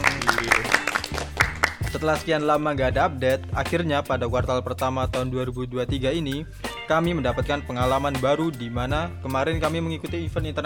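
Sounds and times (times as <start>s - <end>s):
sharp hand claps: 0.0s - 2.2s
speech: 2.0s - 10.6s.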